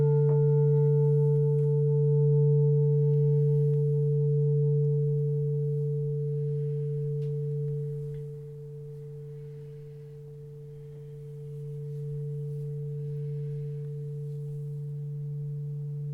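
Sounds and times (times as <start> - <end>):
chakra singing bowl: 0.0 - 16.1.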